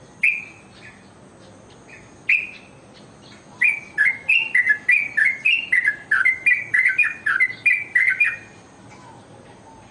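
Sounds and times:
bird ringing chirps: 1.8s - 8.6s.

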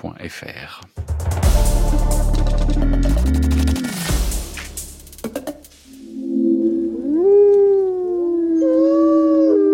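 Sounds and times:
loud burst of heavy music: 1.0s - 7.0s
wolves howling: 6.8s - 9.7s.

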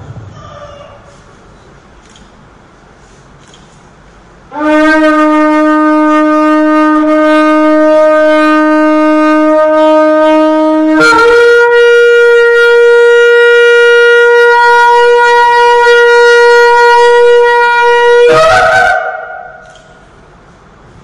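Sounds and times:
long shofar blast: 4.5s - 19.7s.

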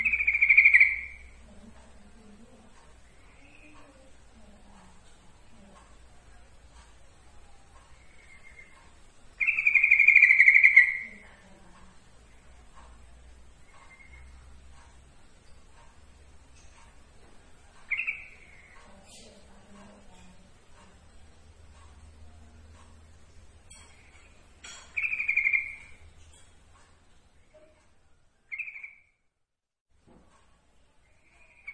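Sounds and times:
yellow-vented bulbul giving bright notes: 0.0s - 1.5s, 7.8s - 11.6s, 13.6s - 14.9s, 17.6s - 20.3s, 23.7s - 26.1s, 28.5s - 29.2s, 31.3s - 31.7s.

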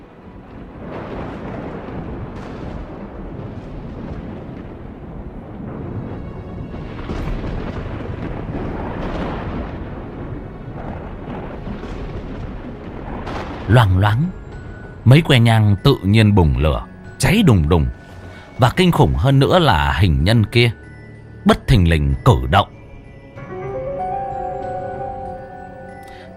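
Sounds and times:
thunder rumbling and crackling: 0.0s - 20.6s
speech: 13.7s - 14.4s, 15.1s - 18.0s, 18.6s - 22.8s.

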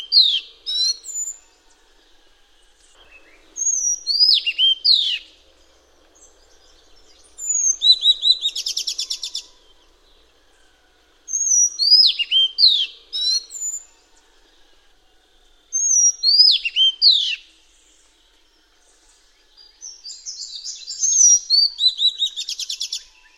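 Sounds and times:
Madagascar magpie-robin singing: 0.0s - 1.5s, 3.0s - 5.4s, 6.2s - 9.6s, 11.3s - 13.9s, 15.8s - 17.5s, 19.8s - 23.3s.

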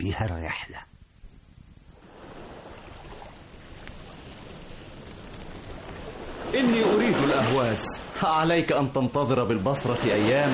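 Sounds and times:
speech: 0.0s - 0.9s, 6.5s - 10.5s
Tigris river water lapping at the shore at Basra: 2.0s - 8.4s.

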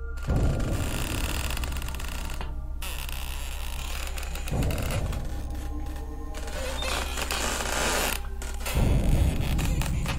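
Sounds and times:
nails pried out of a wooden coffin lid: 0.2s - 10.1s.

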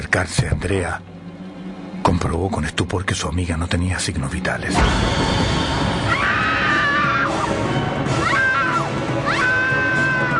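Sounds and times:
constant rumbling background: 0.0s - 10.3s
speech: 0.1s - 1.2s, 2.0s - 6.2s
woman screaming in horror on finding her friend dead in an apartment: 6.0s - 10.3s.

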